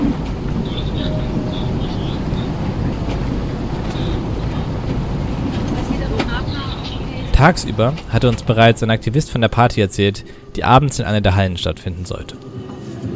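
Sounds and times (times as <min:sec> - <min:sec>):
coal excavator humming: 0:00.0 - 0:12.3
speech: 0:07.4 - 0:13.1.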